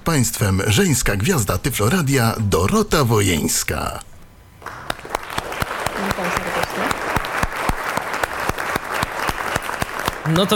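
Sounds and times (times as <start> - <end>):
speech: 0.1 - 4.1, 10.3 - 10.5
group of people clapping: 4.6 - 10.5.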